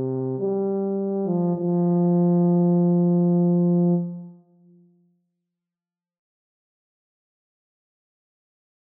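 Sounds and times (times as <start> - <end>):
tuba duet: 0.0 - 4.4.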